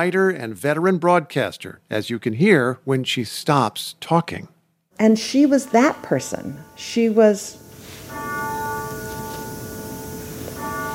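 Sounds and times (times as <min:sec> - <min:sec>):
speech: 0:00.0 - 0:08.3
grandfather clock chiming: 0:05.1 - 0:10.9.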